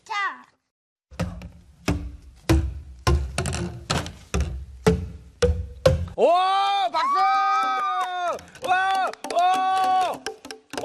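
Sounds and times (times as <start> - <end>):
boomwhacker hollow plastic tubes playing an ascending scale: 1.1 - 6.2, 8.4 - 10.8
speech: 6.2 - 7.4.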